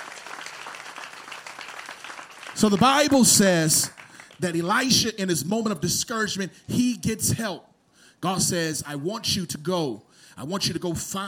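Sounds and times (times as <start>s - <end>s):
audience clapping hands: 0.0s - 4.7s
speech: 2.6s - 11.2s.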